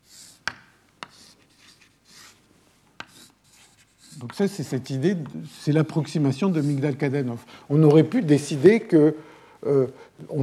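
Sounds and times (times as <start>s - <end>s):
pen strokes drawing links of a network diagram by hand: 0.1s - 6.8s
pen tapping the surface: 0.4s - 1.3s, 3.0s - 3.2s
speech: 4.2s - 10.4s.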